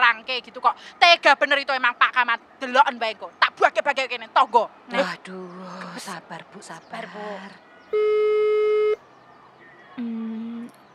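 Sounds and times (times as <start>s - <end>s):
speech: 0.3s - 8.5s
steady electronic ringback tone of a phone or video call connecting: 8.0s - 9.0s.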